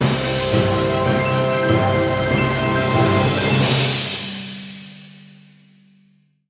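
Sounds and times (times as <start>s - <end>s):
orchestral music: 0.0s - 5.0s.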